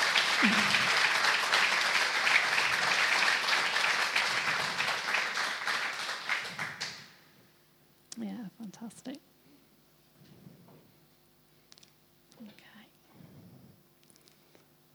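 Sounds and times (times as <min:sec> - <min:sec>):
audience applause: 0:00.0 - 0:07.2
speech: 0:00.4 - 0:00.8.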